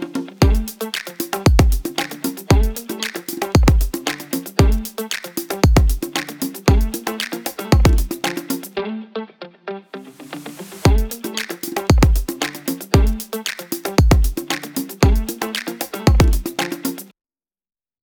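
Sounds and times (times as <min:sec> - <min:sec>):
pop music at 115 BPM: 0:00.4 - 0:08.7, 0:10.8 - 0:17.1.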